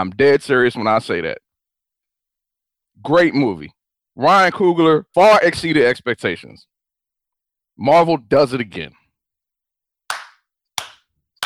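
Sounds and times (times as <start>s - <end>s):
speech: 0.0s - 1.4s, 3.0s - 6.7s, 7.8s - 9.0s
person clapping hands: 10.1s - 11.4s.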